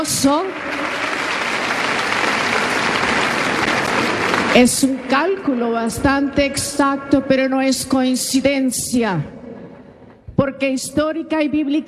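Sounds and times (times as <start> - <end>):
speech: 0.0 - 1.0, 4.5 - 9.4, 10.4 - 11.8
applause from a large crowd: 0.0 - 5.0.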